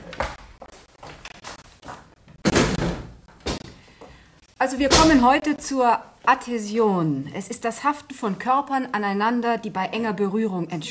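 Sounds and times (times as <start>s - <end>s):
windows thudding shut: 2.4s - 3.6s
speech: 4.6s - 10.8s.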